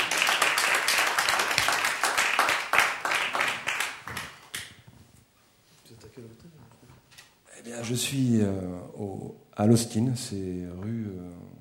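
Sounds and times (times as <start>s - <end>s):
audience applause: 0.0s - 4.7s
speech: 7.8s - 11.5s.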